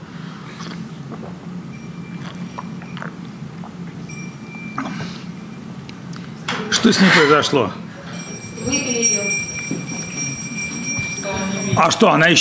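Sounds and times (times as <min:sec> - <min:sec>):
steady low hum: 0:00.0 - 0:12.0
person drinking water from a glass: 0:00.4 - 0:04.0
speech: 0:06.8 - 0:07.8, 0:11.7 - 0:12.3.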